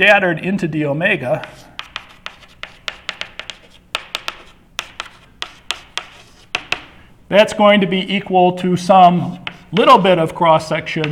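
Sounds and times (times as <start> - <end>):
speech: 0.0 - 1.7, 7.3 - 11.1
eraser wiping a blackboard during a lecture: 1.2 - 7.0, 9.2 - 10.1.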